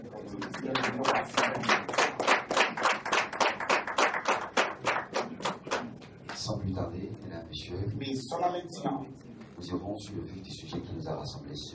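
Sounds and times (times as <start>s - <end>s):
audience clapping: 0.2s - 6.5s
speech: 0.6s - 2.0s, 6.7s - 11.7s.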